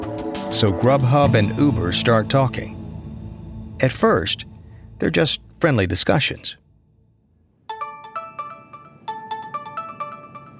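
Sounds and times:
speech: 0.5 - 2.8, 3.8 - 6.6
phone ringing with bright electronic trill: 7.7 - 10.5.

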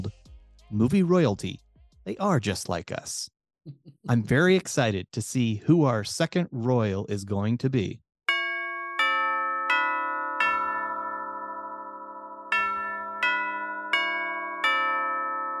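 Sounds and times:
speech: 0.7 - 8.0
electronic doorbell chime at the studio door: 8.3 - 15.5.

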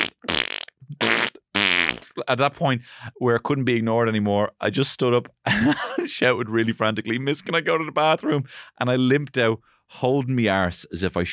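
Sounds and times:
loud wet fart sound effect: 0.0 - 2.2
speech: 2.2 - 11.3.

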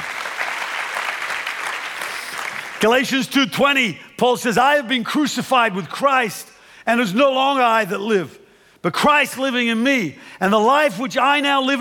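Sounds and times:
congregation applauding during a church service: 0.0 - 3.3
speech: 2.8 - 11.7.

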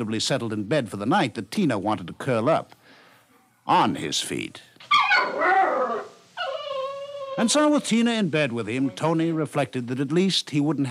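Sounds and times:
speech: 0.0 - 2.8, 3.7 - 6.0, 7.4 - 10.8
dog whimpering: 4.9 - 7.7.

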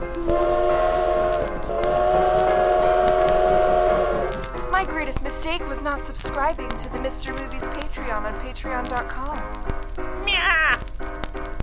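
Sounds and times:
train whistle: 0.0 - 4.4
rolling train wheels rumbling and clattering: 0.0 - 9.9
speech: 5.9 - 9.8.

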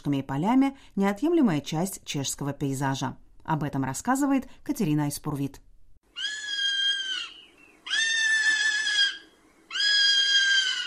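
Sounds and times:
speech: 0.0 - 5.7
common buzzard mewing cries: 6.1 - 10.8.

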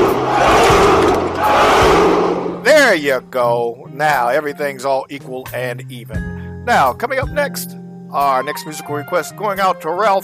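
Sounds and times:
crowd giving three cheers: 0.0 - 2.7
speech: 2.9 - 10.2.

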